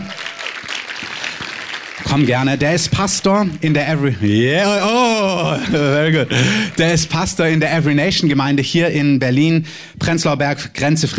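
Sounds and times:
audience applause: 0.0s - 3.2s, 5.6s - 7.7s
speech: 2.1s - 11.1s
laughter: 4.8s - 7.2s.

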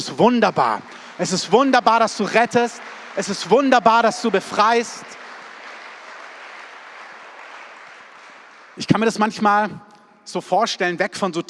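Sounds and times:
speech: 0.0s - 5.2s, 8.8s - 11.4s
audience applause: 0.3s - 9.4s.

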